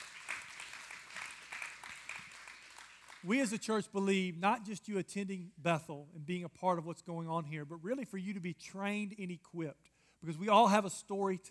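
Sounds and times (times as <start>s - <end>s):
audience clapping: 0.0s - 3.7s
speech: 3.2s - 11.4s.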